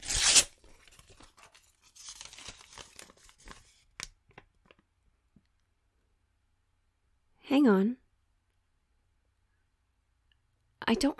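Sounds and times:
letter envelope being torn open: 0.0s - 3.8s
paper crinkling and rustling: 0.0s - 4.8s
speech: 7.5s - 8.0s, 10.9s - 11.1s.

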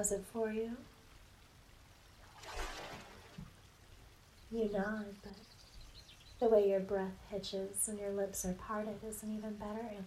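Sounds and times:
speech: 0.0s - 1.0s, 4.5s - 5.6s, 6.4s - 10.0s
water pouring and swishing while washing a body: 2.2s - 3.6s.

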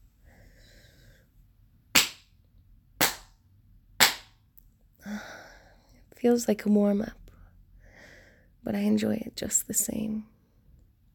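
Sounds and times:
slow deliberate spanking slaps: 2.0s - 2.3s, 3.0s - 3.4s, 4.0s - 4.4s
speech: 6.2s - 7.2s, 8.6s - 10.4s.

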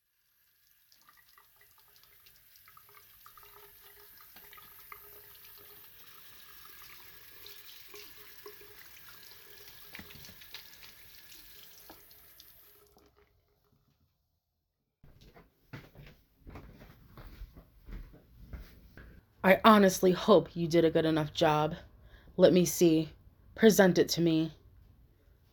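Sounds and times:
water running from a tap during handwashing: 0.0s - 13.2s
irregular splashing and knocks: 9.8s - 10.9s
speech: 19.4s - 24.6s.

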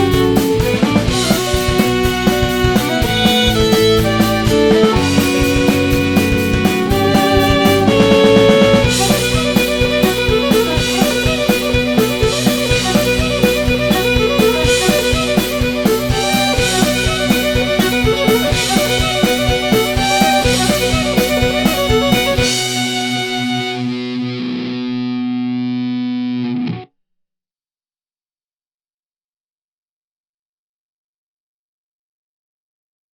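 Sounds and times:
violins: 0.0s - 24.4s
drums: 0.0s - 24.5s
guitar: 0.0s - 26.9s.

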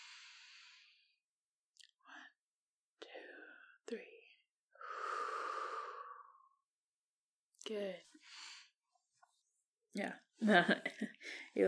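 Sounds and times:
deep breath drawn in through the nose during a lung check: 0.0s - 1.2s, 4.8s - 6.5s, 8.2s - 8.8s
speech: 3.9s - 4.1s, 7.7s - 8.5s, 10.0s - 11.6s.

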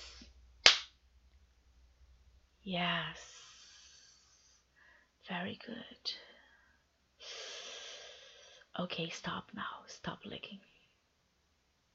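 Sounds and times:
slap to the face: 0.6s - 0.9s
speech: 2.6s - 3.4s, 5.3s - 6.3s, 8.8s - 10.7s.

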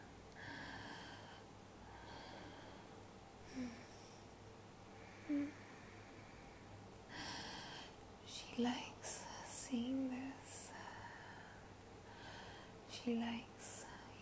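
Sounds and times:
woman's quickened breathing: 0.4s - 4.3s, 5.0s - 8.0s, 10.6s - 12.8s
speech: 5.3s - 5.6s, 8.6s - 8.9s, 9.7s - 10.4s, 13.1s - 13.5s.

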